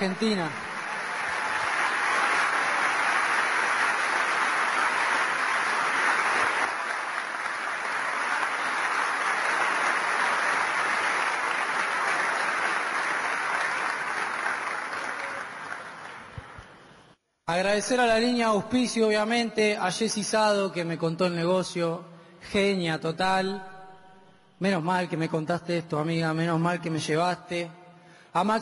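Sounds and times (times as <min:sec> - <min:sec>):
speech: 0:00.0 - 0:00.8, 0:17.6 - 0:23.7, 0:24.6 - 0:27.8, 0:28.4 - 0:28.6
audience applause: 0:00.0 - 0:16.9.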